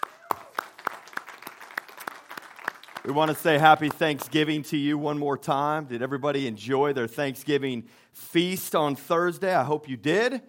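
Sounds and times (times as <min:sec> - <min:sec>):
audience hand clapping: 0:00.0 - 0:04.6
speech: 0:03.0 - 0:10.4.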